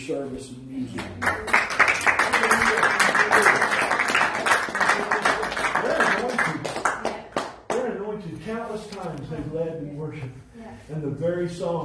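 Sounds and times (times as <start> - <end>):
speech: 0.0 - 1.6, 10.7 - 11.8
audience clapping hands: 0.9 - 8.0.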